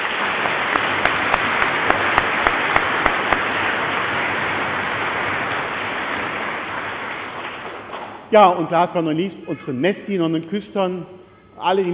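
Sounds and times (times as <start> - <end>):
church audience clapping: 0.0 - 8.2
speech: 8.3 - 11.9.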